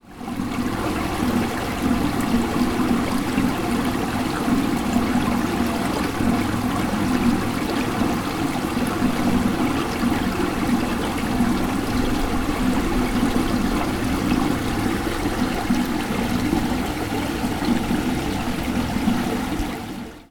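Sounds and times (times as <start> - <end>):
fountain water: 0.0 - 20.2.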